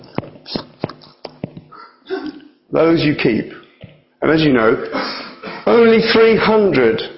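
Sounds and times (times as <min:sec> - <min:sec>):
person imitating a dog lapping water: 0:00.0 - 0:02.6
speech: 0:02.7 - 0:03.6, 0:04.2 - 0:07.1.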